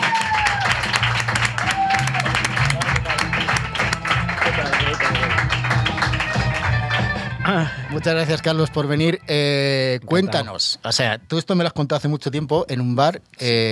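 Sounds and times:
audience applause: 0.0 - 7.3
speech: 8.0 - 13.7.

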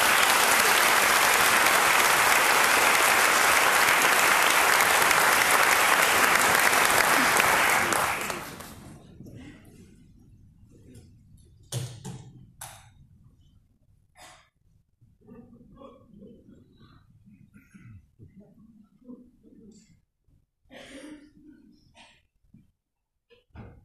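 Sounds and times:
audience applause: 0.0 - 8.8.

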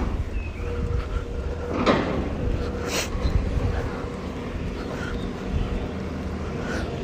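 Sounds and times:
truck engine rumble at a roadworks site: 0.0 - 7.0
metallic clanks and scrapes: 1.6 - 2.8.

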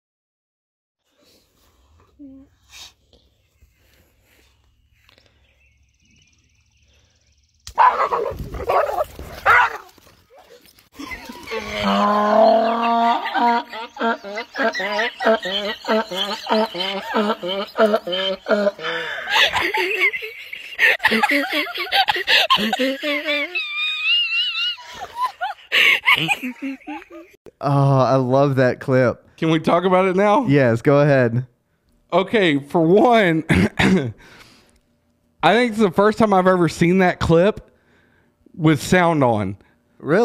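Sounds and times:
speech: 2.2 - 3.0, 14.3 - 20.2, 21.1 - 23.5, 26.2 - 26.9, 27.6 - 31.5, 32.1 - 34.4, 35.4 - 37.7, 38.6 - 40.2
donkey laughing at a boxer dog hitting an electric fence: 7.8 - 21.7
laughter: 10.9 - 27.4.

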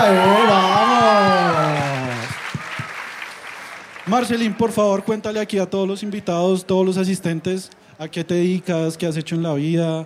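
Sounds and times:
speech: 0.0 - 0.4, 4.1 - 10.0
audience applause: 0.0 - 4.6.

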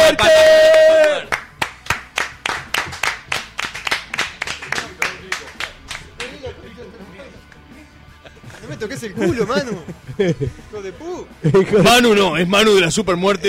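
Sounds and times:
person cheering: 0.0 - 1.3
rhythmic clapping: 0.6 - 6.7, 7.4 - 7.7
laughter: 4.6 - 12.2
speech: 9.0 - 13.4.

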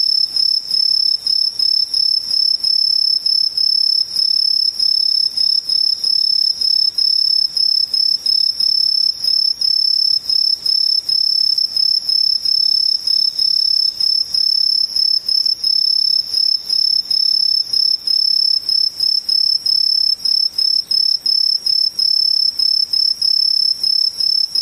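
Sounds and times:
insects trilling: 0.0 - 24.6.

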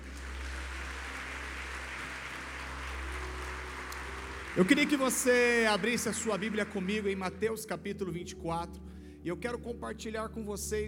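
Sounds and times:
audience applauding in a large room: 0.0 - 7.5
speech: 4.6 - 10.8.

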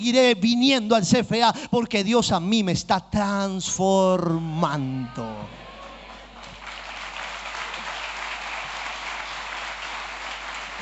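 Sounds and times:
speech: 0.0 - 5.6
audience applause: 5.6 - 10.7.

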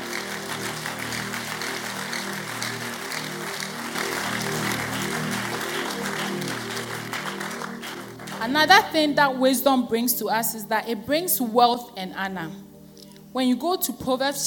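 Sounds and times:
audience clapping in praise: 0.0 - 9.0
speech: 8.4 - 12.7, 13.3 - 14.4.

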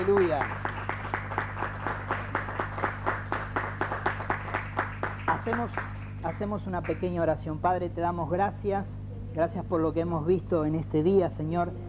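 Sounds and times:
speech: 0.0 - 0.7, 5.5 - 11.8
audience applause: 0.0 - 7.1.

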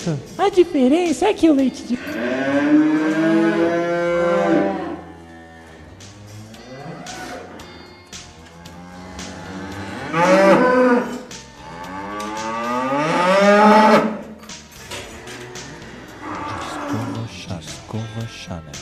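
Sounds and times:
speech: 0.0 - 3.0
cow mooing: 2.0 - 7.6, 8.4 - 14.4, 15.1 - 17.3.

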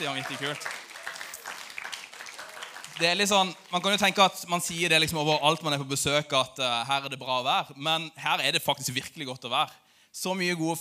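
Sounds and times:
speech: 0.0 - 0.8, 3.0 - 10.7
audience applause: 0.0 - 4.3.

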